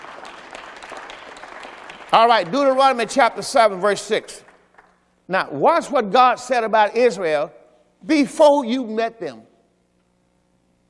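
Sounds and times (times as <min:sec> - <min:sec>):
audience hand clapping: 0:00.0 - 0:05.0
speech: 0:02.1 - 0:04.5, 0:05.3 - 0:09.5.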